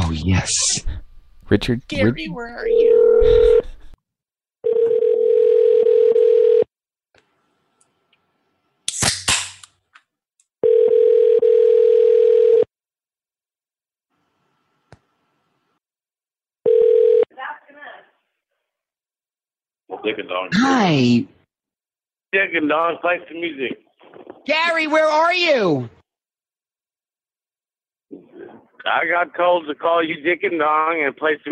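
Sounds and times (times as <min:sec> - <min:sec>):
speech: 0:00.2 - 0:03.8, 0:20.0 - 0:21.4, 0:22.3 - 0:26.0, 0:28.8 - 0:31.5
telephone dial tone: 0:02.7 - 0:03.8, 0:04.6 - 0:06.7, 0:10.6 - 0:12.7, 0:16.6 - 0:17.3.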